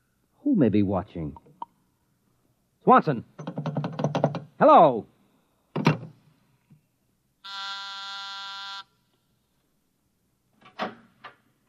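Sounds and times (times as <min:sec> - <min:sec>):
speech: 0:00.4 - 0:01.5, 0:02.8 - 0:03.8, 0:04.6 - 0:05.1
office intercom buzzer: 0:07.4 - 0:08.9.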